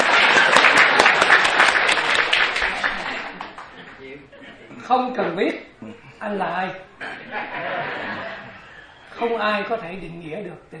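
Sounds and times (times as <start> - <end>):
audience applause: 0.0 - 3.8
speech: 4.9 - 8.4, 9.2 - 10.7
laughter: 7.0 - 9.2.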